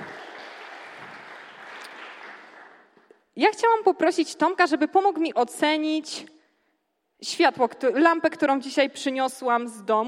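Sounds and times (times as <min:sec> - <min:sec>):
audience applause: 0:00.0 - 0:03.0
speech: 0:03.4 - 0:06.4, 0:07.2 - 0:10.0.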